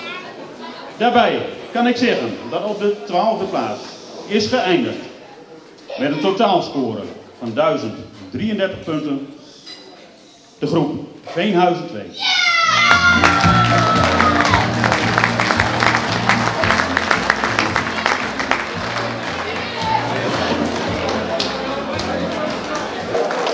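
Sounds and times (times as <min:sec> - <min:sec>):
speech: 0:01.0 - 0:05.1, 0:06.0 - 0:09.4, 0:10.6 - 0:14.3
audience cheering and applause: 0:12.3 - 0:23.5.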